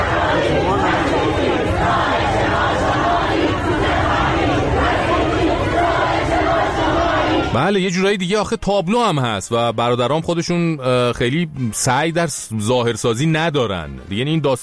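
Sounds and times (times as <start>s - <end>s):
protesters chanting slogan outside education office: 0.0s - 7.8s
speech: 7.6s - 14.6s.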